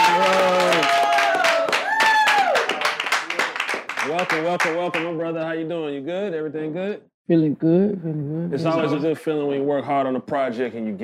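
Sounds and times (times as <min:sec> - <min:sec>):
studio audience applause: 0:00.0 - 0:05.6
speech: 0:04.2 - 0:11.0.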